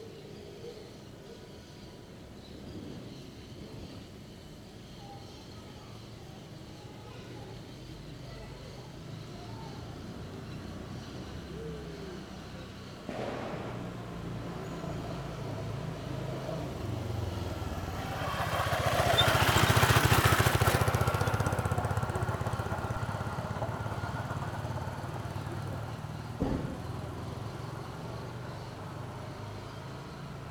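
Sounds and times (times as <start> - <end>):
people in front of a church in the late afternoon: 0.0 - 30.4
children in front of a church in the late afternoon: 3.6 - 30.4
motorcycle passing in front of a church: 10.0 - 30.4.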